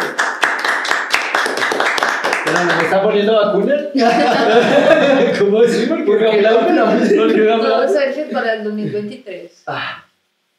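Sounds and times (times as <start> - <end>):
applause: 0.0 - 3.0
speech: 2.6 - 10.0
laughter: 4.0 - 9.0.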